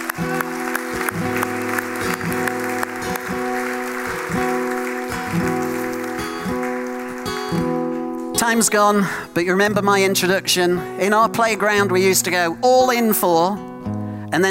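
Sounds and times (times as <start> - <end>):
audience applause: 0.0 - 8.2
speech: 8.4 - 13.7, 14.3 - 14.5.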